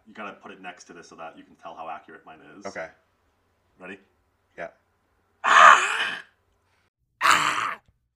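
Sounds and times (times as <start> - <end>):
speech: 0.2 - 3.1, 3.8 - 4.8
person imitating a zombie scream: 5.4 - 6.3, 7.2 - 7.9.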